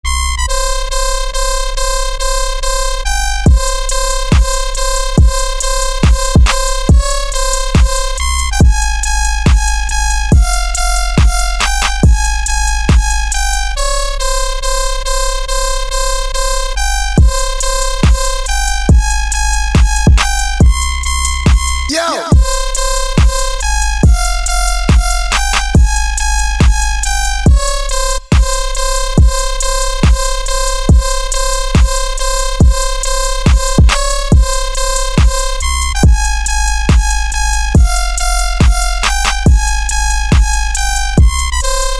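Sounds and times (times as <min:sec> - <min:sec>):
dubstep music: 0:00.1 - 0:41.9.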